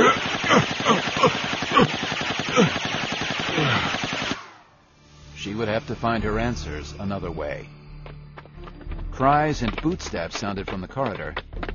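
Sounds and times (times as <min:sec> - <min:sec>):
automatic gunfire emptying a clip: 0:00.0 - 0:04.6
speech: 0:05.6 - 0:07.8, 0:09.2 - 0:11.6.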